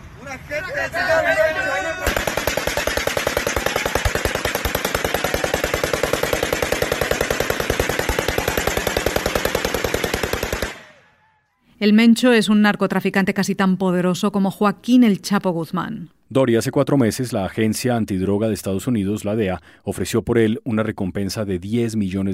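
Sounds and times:
shouting voices of masked cartel gunmen: 0:00.2 - 0:11.5
speech: 0:00.4 - 0:02.0, 0:11.8 - 0:22.3
rapid automatic gunfire from masked cartel gunmen shooting into the air: 0:02.0 - 0:11.0.

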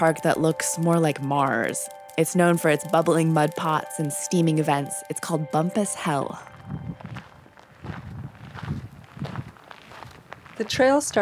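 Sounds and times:
speech: 0:00.0 - 0:06.9, 0:10.6 - 0:11.2
footsteps crunching on a gritty hiking trail: 0:05.3 - 0:11.2.

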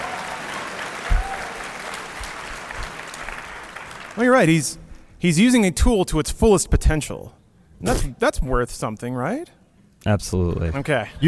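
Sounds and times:
clapping applause: 0:00.0 - 0:04.2
speech: 0:04.2 - 0:11.2.

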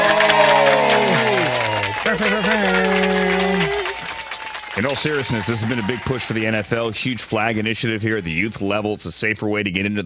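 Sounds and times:
applause: 0:00.0 - 0:08.7
crowd cheering and whooping: 0:00.0 - 0:08.7
speech: 0:04.8 - 0:10.0.

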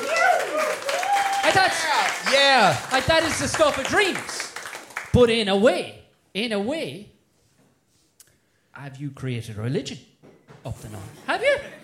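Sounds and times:
cheering and whooping voices: 0:00.0 - 0:02.8
audience applause: 0:00.0 - 0:05.2
speech: 0:01.6 - 0:04.4, 0:05.2 - 0:07.1, 0:08.8 - 0:11.8.

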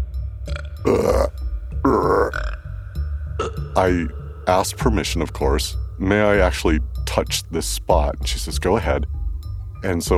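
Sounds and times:
person burping: 0:00.5 - 0:02.7, 0:03.4 - 0:03.8
speech: 0:03.8 - 0:09.2, 0:09.8 - 0:10.1.

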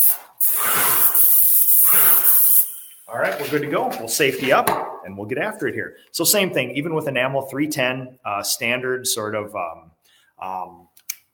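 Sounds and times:
paint sprayer laying down a coat of enamel: 0:00.0 - 0:03.8
speech: 0:03.1 - 0:11.0.

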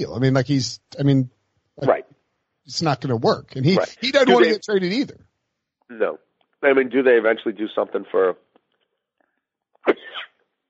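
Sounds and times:
speech: 0:00.0 - 0:02.0, 0:02.7 - 0:05.3, 0:05.9 - 0:08.4
sneeze: 0:09.8 - 0:10.5.

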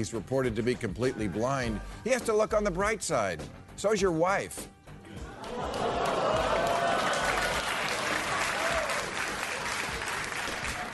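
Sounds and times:
speech: 0:00.0 - 0:04.8
crowd booing and shouting: 0:05.2 - 0:09.2
crowd applause: 0:05.2 - 0:10.9.

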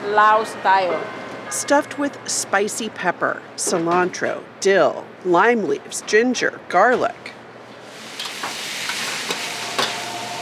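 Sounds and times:
speech: 0:00.1 - 0:07.3
food frying in a pan: 0:07.8 - 0:10.4.

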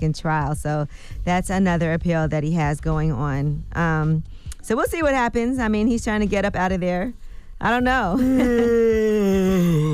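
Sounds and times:
speech: 0:00.0 - 0:09.9
person yawning: 0:08.3 - 0:09.9.

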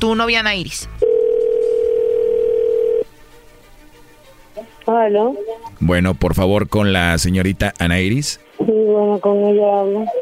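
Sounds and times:
speech: 0:00.0 - 0:01.0, 0:04.6 - 0:10.2
phone line hiss: 0:01.0 - 0:03.0
telephone dial tone: 0:01.0 - 0:03.1.

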